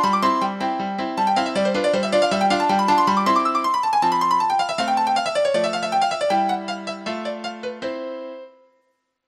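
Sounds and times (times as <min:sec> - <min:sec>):
keytar playing classical music: 0:00.0 - 0:08.6.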